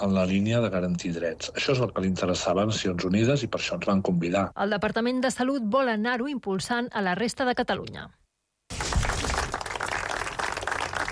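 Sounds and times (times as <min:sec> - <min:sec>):
speech: 0:00.0 - 0:08.2
applause ending a minute of silence: 0:08.7 - 0:11.1.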